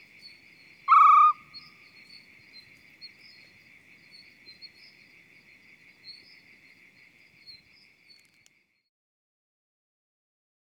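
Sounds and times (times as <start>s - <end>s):
male Arabian Scops Owl hooting: 0.9s - 1.6s.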